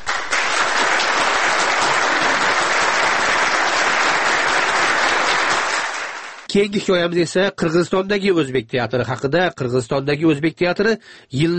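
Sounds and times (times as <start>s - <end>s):
theatre audience applauding a staging of Shakespeare's Richard III: 0.0s - 6.5s
speech: 6.6s - 11.5s.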